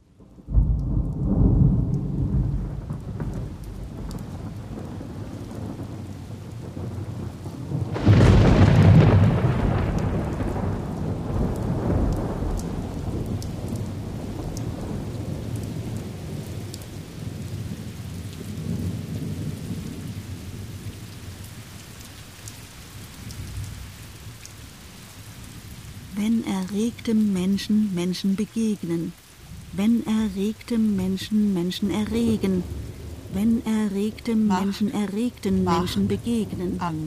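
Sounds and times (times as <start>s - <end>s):
rain: 0.0s - 37.0s
thunder: 0.2s - 21.2s
speech: 26.6s - 29.2s, 29.8s - 37.0s.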